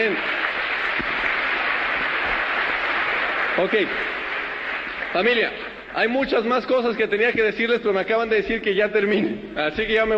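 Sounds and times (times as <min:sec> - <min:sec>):
audience applause at a sales and invitation talk: 0:00.0 - 0:06.1
speech: 0:03.6 - 0:04.2, 0:05.1 - 0:10.1.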